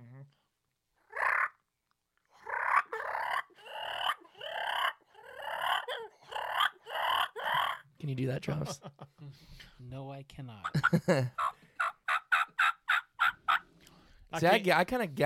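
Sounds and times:
turkey fighting purr on a mouth call: 1.0s - 1.6s, 2.4s - 7.9s, 10.7s - 13.7s
speech: 8.0s - 11.5s, 14.3s - 15.2s
laughter: 8.4s - 9.3s, 10.7s - 11.5s.

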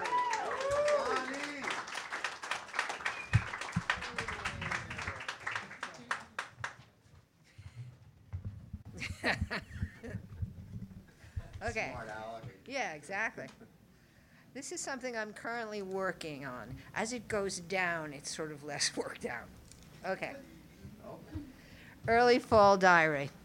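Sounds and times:
audience applause at a reading event: 0.0s - 6.9s
speech: 9.2s - 9.7s, 11.6s - 13.6s, 14.6s - 20.5s, 22.1s - 23.4s.

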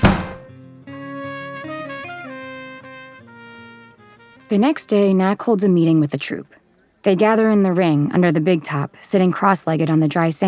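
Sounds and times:
door slamming shut: 0.0s - 0.4s
speech: 4.5s - 10.4s.

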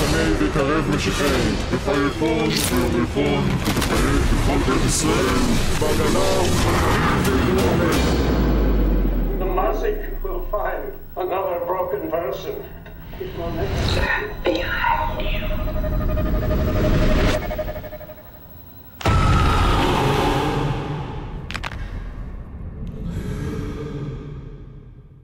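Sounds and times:
dark rumbling drones in a horror film trailer: 0.0s - 25.2s
speech: 0.2s - 8.4s, 9.7s - 17.1s
breathy whispers and gasps: 13.9s - 15.6s, 22.9s - 24.8s.

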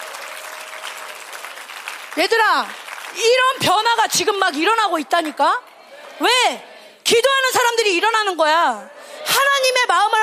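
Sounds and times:
crowd clapping: 0.0s - 6.2s
speech: 2.2s - 9.0s, 9.8s - 10.2s.

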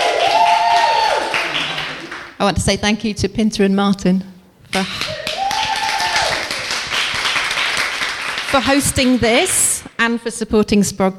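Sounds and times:
audience clapping: 0.0s - 2.4s, 4.9s - 9.8s
speech: 2.4s - 5.2s, 8.5s - 11.1s.

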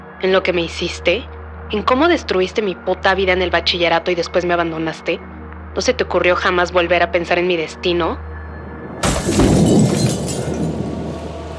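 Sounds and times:
speech: 0.2s - 8.3s
pigeon crashing into glass: 9.0s - 10.9s.

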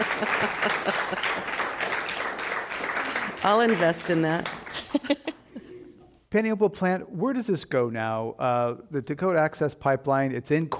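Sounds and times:
laughter: 0.0s - 1.9s, 4.7s - 6.0s
audience applauding: 0.0s - 5.3s
speech: 0.2s - 1.4s, 3.4s - 5.3s, 6.3s - 10.7s.

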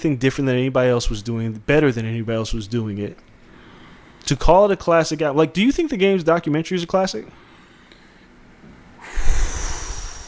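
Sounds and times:
speech: 0.0s - 3.3s, 4.2s - 7.4s
loud heavy exhale: 9.0s - 10.2s.

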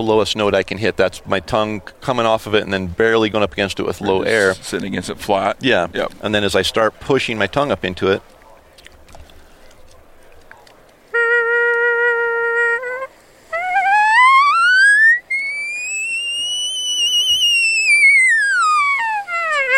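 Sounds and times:
speech: 0.0s - 8.3s
elk call blown to mimic a European ambulance siren: 11.1s - 19.7s.

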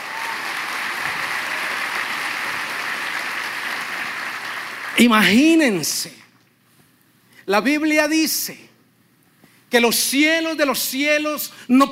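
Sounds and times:
audience applause: 0.0s - 5.1s
speech: 5.0s - 6.2s, 7.5s - 8.7s, 9.7s - 11.9s.

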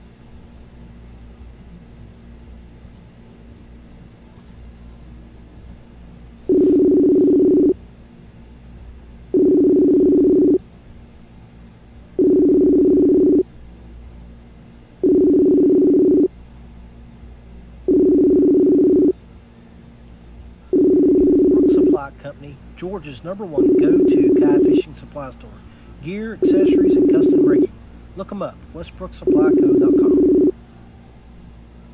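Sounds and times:
telephone ringback tone while calling two people at once: 6.5s - 7.8s, 9.4s - 10.6s, 12.2s - 13.4s, 15.0s - 16.3s, 17.9s - 19.1s, 20.7s - 22.0s, 23.6s - 24.8s, 26.4s - 27.6s, 29.3s - 30.5s
speech: 22.8s - 27.6s, 28.2s - 30.2s.

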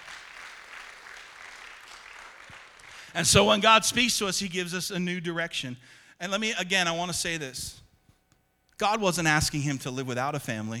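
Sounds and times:
audience applause: 0.0s - 3.4s
speech: 3.1s - 7.8s, 8.8s - 10.7s.

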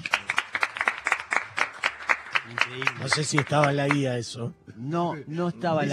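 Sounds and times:
improvised applause: 0.0s - 4.3s
speech: 2.5s - 5.9s.

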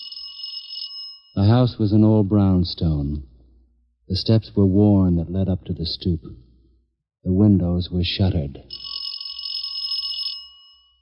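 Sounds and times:
electric doorbell buzzing: 0.0s - 1.3s, 8.7s - 11.0s
speech: 1.4s - 3.3s, 4.1s - 6.5s, 7.2s - 8.8s.

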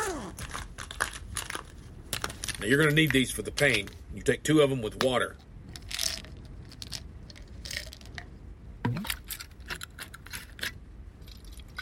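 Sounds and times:
packets crinkling and rustling in a med kit: 0.0s - 3.2s
speech: 2.6s - 5.5s.

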